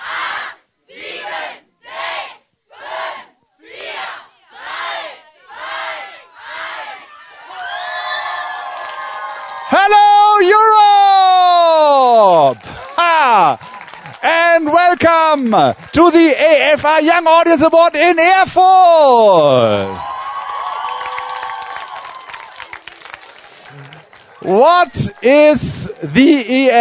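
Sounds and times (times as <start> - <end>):
crowd at a youth film award show in Erfurt shouting a countdown in unison: 0.0 - 7.2
crowd at a youth film award show in Erfurt cheering and whooping: 7.1 - 14.3, 19.5 - 26.1
speech: 14.6 - 20.1, 24.5 - 26.7.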